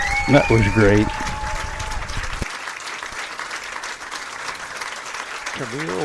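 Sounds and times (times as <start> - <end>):
speech: 0.3 - 1.3, 5.6 - 6.0
applause: 0.8 - 6.0.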